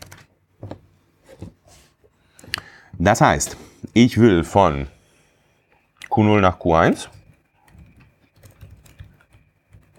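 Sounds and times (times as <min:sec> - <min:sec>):
speech: 0:03.0 - 0:05.0, 0:06.2 - 0:07.2
typing on a computer keyboard: 0:07.1 - 0:09.9.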